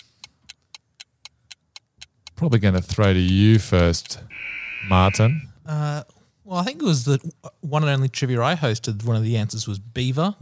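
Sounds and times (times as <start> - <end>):
clock ticking: 0.0 - 5.4
speech: 2.4 - 10.4.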